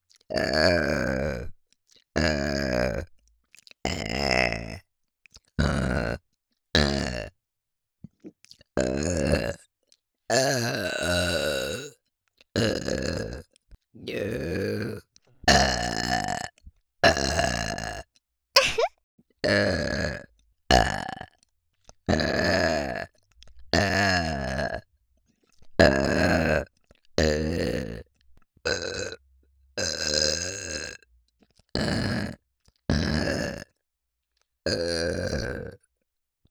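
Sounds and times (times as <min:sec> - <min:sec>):
burping: 0:00.3 - 0:01.5, 0:02.2 - 0:03.1, 0:05.6 - 0:06.2, 0:06.8 - 0:07.3, 0:08.8 - 0:09.6, 0:10.3 - 0:12.0, 0:12.6 - 0:21.4, 0:22.1 - 0:24.9, 0:25.8 - 0:29.2, 0:29.8 - 0:31.0, 0:31.8 - 0:33.8, 0:34.7 - 0:35.9.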